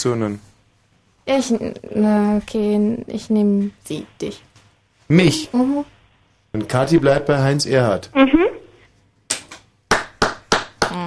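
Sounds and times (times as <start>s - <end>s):
speech: 0.0s - 0.5s, 1.3s - 4.5s, 5.1s - 8.6s
self-applause hand clapping: 9.3s - 11.0s.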